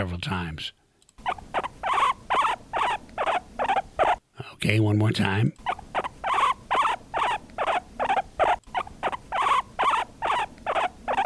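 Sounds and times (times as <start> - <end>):
speech: 0.0 - 1.5, 4.6 - 5.7
guinea pig squeaking: 1.2 - 4.2, 5.6 - 11.2.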